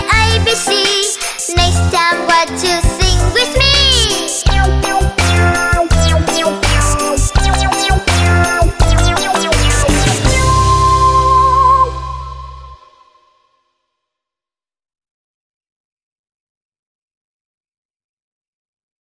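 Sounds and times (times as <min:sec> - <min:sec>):
Vietnamese kindergarten children's song: 0:00.0 - 0:13.1.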